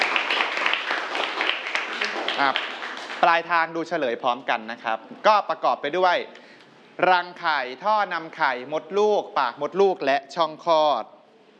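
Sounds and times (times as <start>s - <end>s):
students applauding a classmate: 0.0s - 3.5s
speech: 2.4s - 6.4s, 7.0s - 11.2s.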